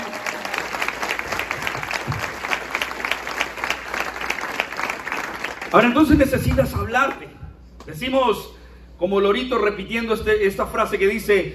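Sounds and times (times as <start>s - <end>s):
audience applauding: 0.0s - 6.6s
speech: 5.7s - 11.5s.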